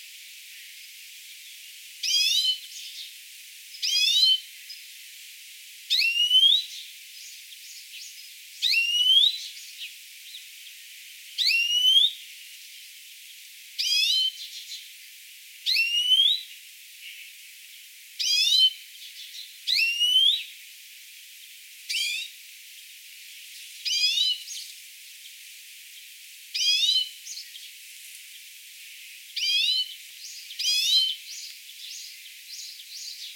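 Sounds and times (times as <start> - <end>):
European greenfinch calls: 2.0 - 3.0, 3.8 - 4.4, 5.9 - 6.7, 7.6 - 9.9, 11.4 - 12.1, 15.7 - 16.4, 18.2 - 20.5, 21.9 - 22.3, 23.8 - 24.7, 26.6 - 27.7, 29.3 - 33.3.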